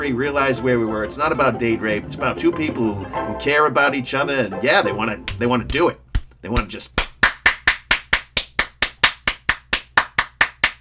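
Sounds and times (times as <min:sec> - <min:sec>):
speech: 0:00.0 - 0:07.0
hands clapping: 0:05.2 - 0:10.7.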